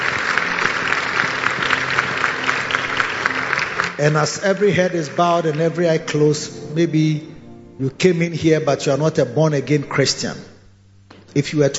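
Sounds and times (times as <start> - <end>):
crowd applause: 0.0 - 6.6
speech: 4.0 - 10.5, 11.3 - 11.7.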